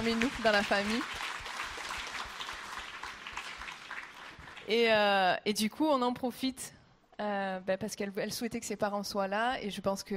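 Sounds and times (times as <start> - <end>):
speech: 0.0 - 1.3, 4.7 - 10.1
crowd clapping: 0.0 - 4.9.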